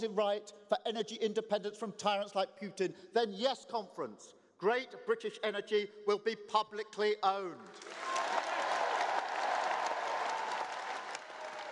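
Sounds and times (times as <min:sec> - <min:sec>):
speech: 0:00.0 - 0:08.1
Labour Party conference audience giving a standing ovation: 0:07.8 - 0:11.7.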